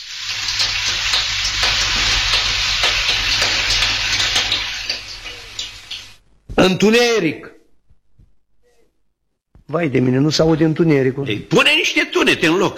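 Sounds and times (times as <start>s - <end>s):
rain sound effect: 0.0s - 6.2s
speech: 6.6s - 7.6s, 9.7s - 12.7s.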